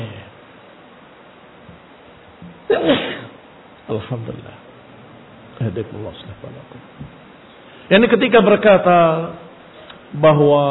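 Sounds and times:
sneeze: 2.7 - 3.4
speech: 3.9 - 4.7, 5.6 - 7.3, 7.9 - 9.4, 10.1 - 10.6.

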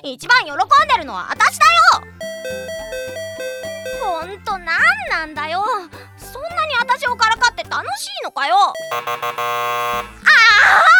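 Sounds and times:
speech: 0.0 - 2.9, 4.0 - 10.9
ping-pong chime buzzer: 2.2 - 4.2, 8.8 - 10.3.

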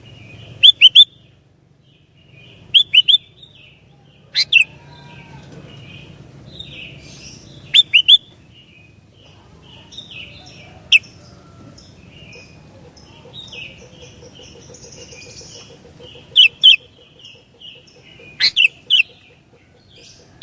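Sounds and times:
Sooty-headed bulbul song: 0.6 - 1.2, 2.4 - 4.7, 6.6 - 8.4, 13.5 - 19.2.

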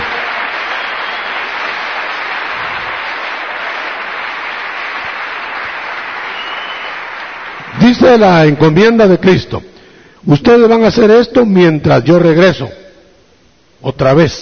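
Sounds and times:
audience applause: 0.0 - 8.5
speech: 8.0 - 12.8, 13.8 - 14.4.

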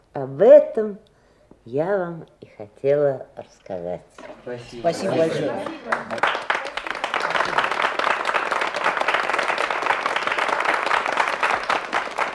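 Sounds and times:
speech: 0.2 - 6.5
audience applause: 5.1 - 12.3.

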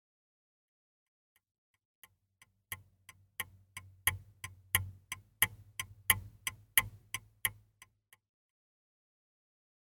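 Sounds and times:
clock ticking: 2.0 - 8.0.

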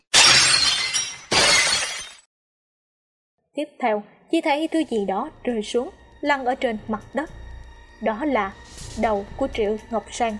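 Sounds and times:
glass shattering: 0.0 - 2.3
speech: 3.6 - 7.4, 8.0 - 10.3.

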